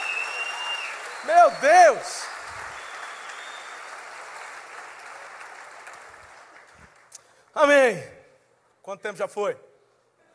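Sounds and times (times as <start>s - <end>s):
audience applauding: 0.0s - 7.2s
speech: 1.2s - 2.4s, 7.6s - 8.1s, 8.8s - 9.7s.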